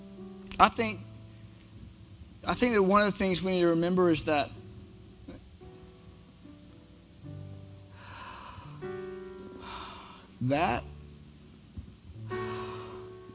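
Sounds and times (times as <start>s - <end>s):
speech: 0.6s - 1.1s, 2.4s - 4.6s, 10.5s - 10.9s
deep breaths: 7.9s - 10.4s, 12.3s - 13.3s.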